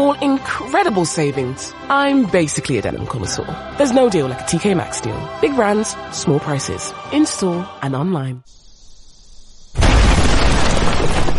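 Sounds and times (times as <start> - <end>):
speech: 0.0 - 8.6
bomb explosion: 9.8 - 11.3.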